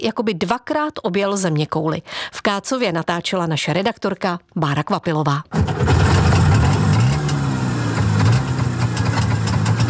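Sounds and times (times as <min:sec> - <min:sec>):
speech: 0:00.0 - 0:06.0
Velorex small vehicle engine idling: 0:05.5 - 0:09.8.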